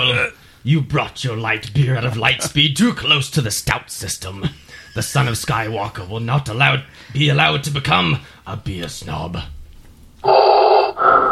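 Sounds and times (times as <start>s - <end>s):
speech: 0.0s - 9.6s, 10.2s - 10.6s
Vader breathing sound: 10.2s - 11.3s.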